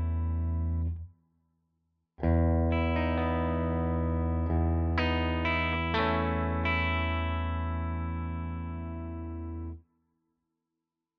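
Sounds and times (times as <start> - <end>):
Ibanez AZ guitar clean arpeggios in all positions: 0.0 - 1.1, 2.2 - 9.8.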